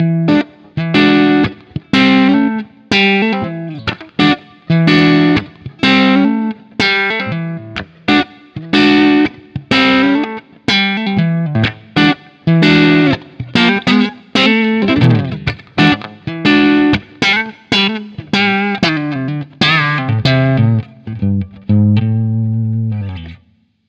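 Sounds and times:
Custom 57 breakup through 4x12 vintage basketweave cabinet: 0.0 - 23.5.

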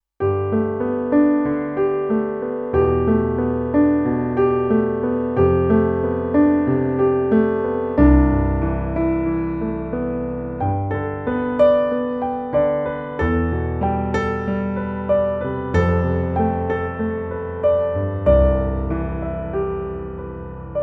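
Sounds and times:
Roland RP102 concert piano: 0.2 - 20.8.

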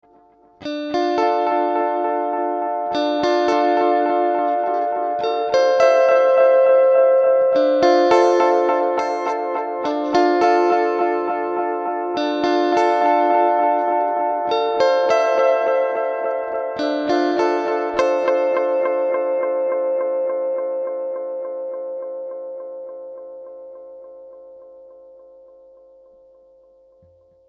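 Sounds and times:
vintage guitar: 0.0 - 27.4.

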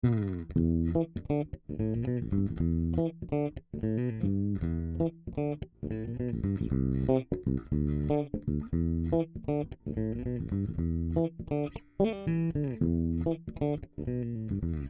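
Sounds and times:
fingerstyle guitar bridge: 0.0 - 14.8.

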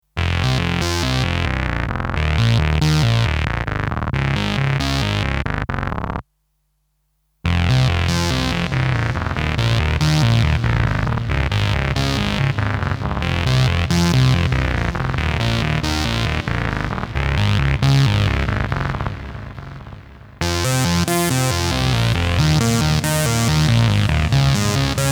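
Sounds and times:
bass through Lexicon PCM70 single delay: 0.2 - 6.2, 7.5 - 25.1.

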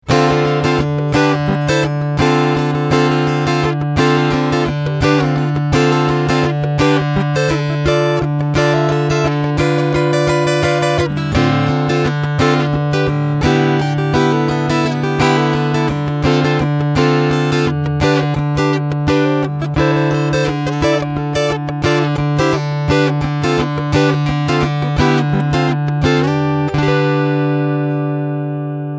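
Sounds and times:
PRS SE Hollowbody II guitar strumming through piezo pickup: 0.0 - 28.9.

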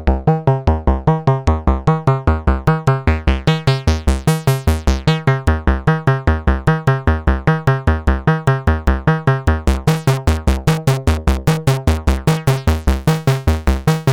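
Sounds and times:
Erica Synths Black System EG2 modulating VCF filter: 0.2 - 14.1.

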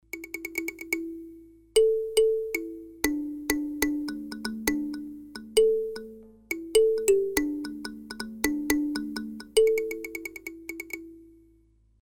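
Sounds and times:
Mooer synth drum patch kalimba: 0.2 - 11.1.

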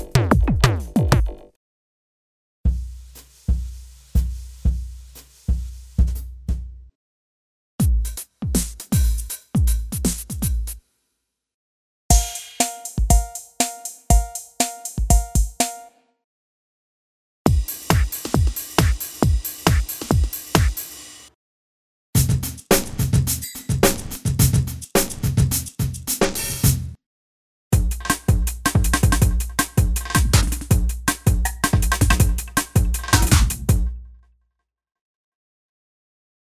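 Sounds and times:
drums: 0.0 - 1.5, 2.7 - 6.9, 7.8 - 10.8, 12.1 - 15.9, 17.5 - 21.3, 22.2 - 27.0, 27.8 - 34.0.

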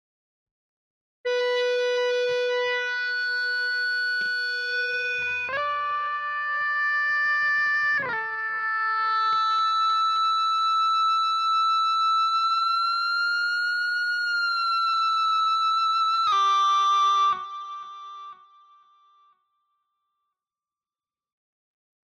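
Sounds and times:
Cort MBM 2H high gain guitar with Sustainiac: 1.3 - 17.8.

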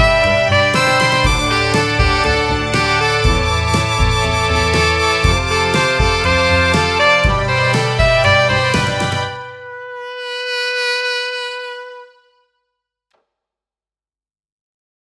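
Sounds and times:
brush drumming: 0.0 - 9.4
strings: 0.0 - 9.7
horns: 0.0 - 12.4.

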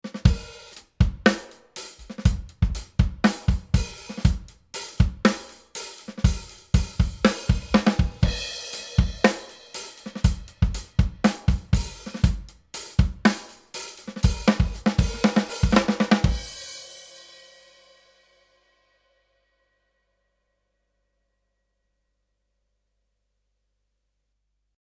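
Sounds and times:
drums through Rupert Neve Designs 5254: 0.0 - 18.4.

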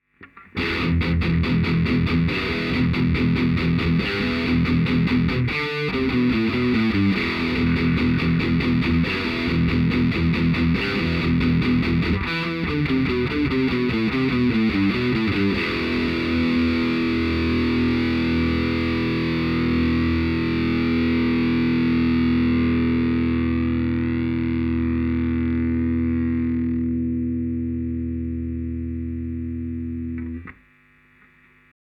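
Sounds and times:
guitar recorded with Beyerdynamic M130 at 90°: 0.0 - 31.6.

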